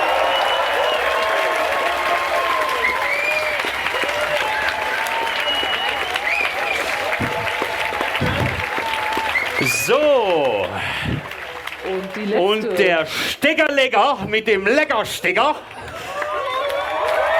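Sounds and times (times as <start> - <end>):
audience applause in a TV show studio: 0.0 - 13.1, 15.4 - 17.3
speech: 9.9 - 11.0, 12.2 - 15.7.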